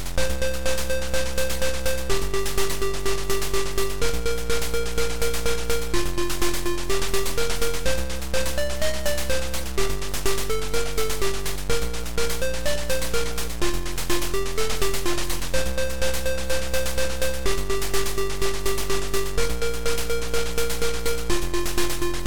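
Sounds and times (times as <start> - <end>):
game music: 0.2 - 22.2.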